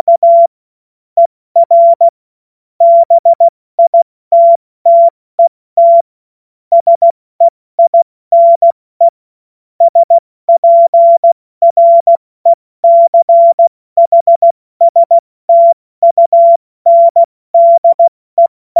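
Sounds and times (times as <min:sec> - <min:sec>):
CW Morse code beeps: 0:00.0 - 0:00.5, 0:01.6 - 0:02.2, 0:02.8 - 0:05.1, 0:05.8 - 0:06.1, 0:06.7 - 0:08.8, 0:09.8 - 0:12.2, 0:12.8 - 0:18.7.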